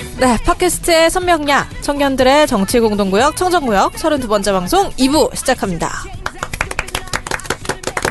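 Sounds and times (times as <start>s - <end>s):
speech: 0.2s - 6.2s
loud applause from studio audience: 6.2s - 8.0s.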